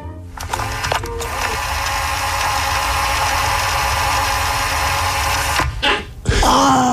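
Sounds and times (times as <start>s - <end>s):
cassette rewinding: 0.3s - 5.8s.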